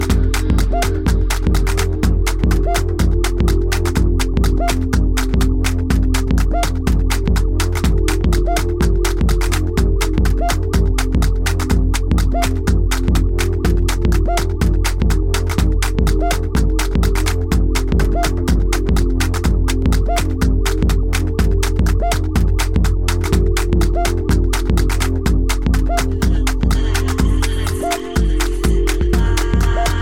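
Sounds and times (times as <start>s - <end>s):
clapping: 0.0s - 30.0s.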